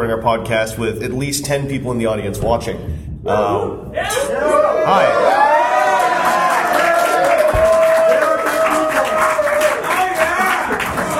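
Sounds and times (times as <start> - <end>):
speech: 0.1 - 5.4
audience cheering and clapping: 4.2 - 11.1.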